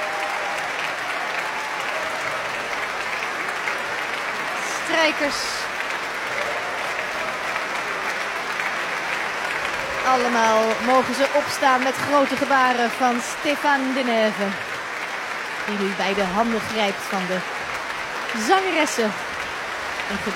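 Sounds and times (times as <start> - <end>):
large concert audience applause: 0.0 - 20.3
speech: 5.0 - 5.6, 10.1 - 14.7, 15.7 - 17.6, 18.3 - 19.2, 20.1 - 20.3.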